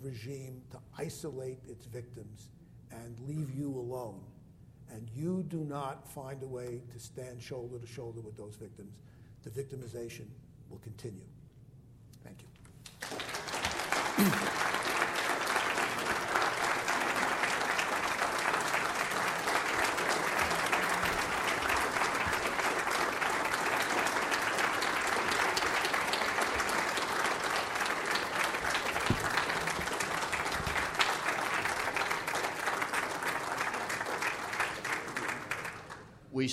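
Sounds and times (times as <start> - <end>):
speech: 0.0 - 11.4, 12.2 - 12.5, 14.2 - 14.7
standing applause: 12.9 - 36.1.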